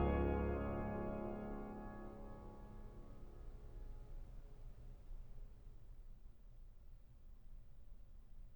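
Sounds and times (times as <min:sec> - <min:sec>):
organ playing a chorale: 0:00.0 - 0:02.5.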